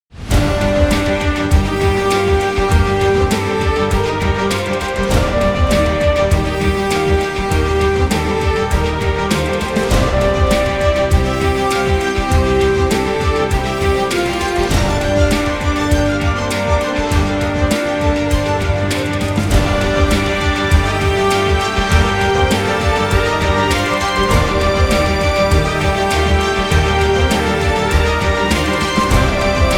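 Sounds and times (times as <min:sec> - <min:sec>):
news theme demo melody: 0:00.3 - 0:29.7.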